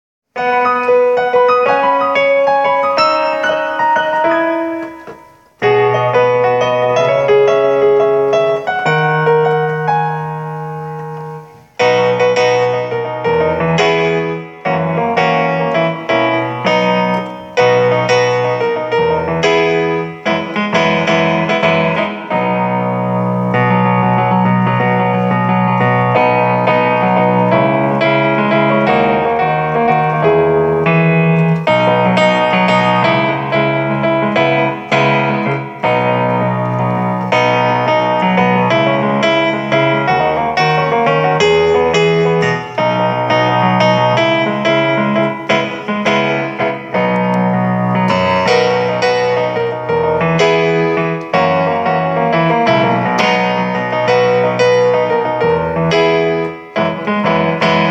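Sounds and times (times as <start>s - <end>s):
christmas song backing track: 0.3s - 57.8s.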